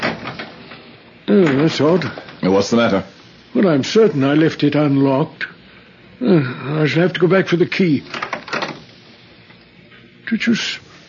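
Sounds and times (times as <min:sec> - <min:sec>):
door creaking open by itself: 0:00.0 - 0:02.5, 0:08.1 - 0:08.9
speech: 0:01.3 - 0:05.6, 0:06.2 - 0:08.2, 0:10.3 - 0:10.8.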